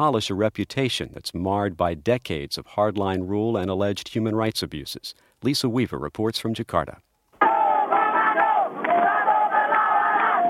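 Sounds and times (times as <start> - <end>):
speech: 0.0 - 7.1
crowd of protesters shouting: 7.4 - 10.4.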